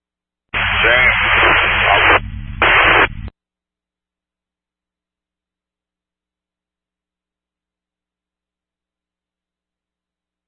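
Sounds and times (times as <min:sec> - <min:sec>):
radio static: 0:00.6 - 0:03.3.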